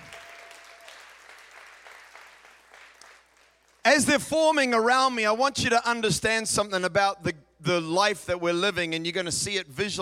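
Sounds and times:
audience clapping: 0.0s - 3.9s
speech: 3.9s - 10.0s.

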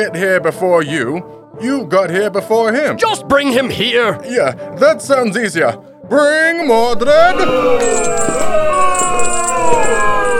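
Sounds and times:
speech: 0.0s - 10.3s
audience booing: 6.6s - 10.3s.

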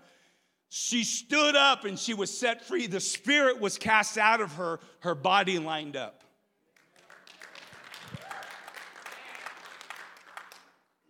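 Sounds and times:
speech: 0.8s - 6.2s
golf clap, light polite applause: 6.7s - 11.0s.

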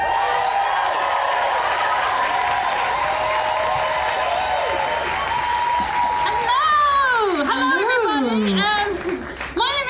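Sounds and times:
audience whoops and shouts: 0.0s - 7.7s
audience applause welcoming performers on stage: 0.0s - 9.7s.

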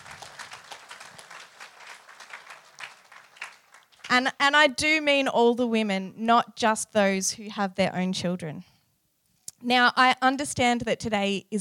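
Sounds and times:
crowd applauding: 0.0s - 4.2s
speech: 4.1s - 8.7s, 9.6s - 11.5s.

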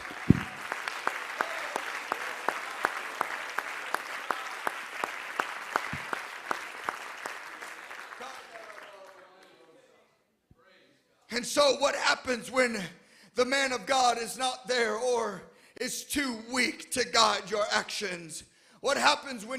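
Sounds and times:
audience clapping hands in rhythm: 0.0s - 9.8s
speech: 11.4s - 19.5s.

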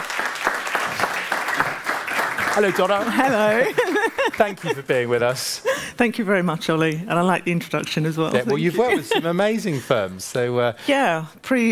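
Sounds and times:
audience applause welcoming a keynote speaker at a talk on workplace diversity: 0.0s - 4.8s
laughter: 2.6s - 5.6s, 8.4s - 10.0s
speech: 2.6s - 11.7s.

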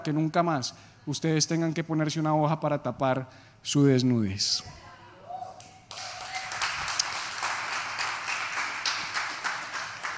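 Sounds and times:
speech: 0.0s - 4.8s
audience applause: 5.9s - 10.1s.

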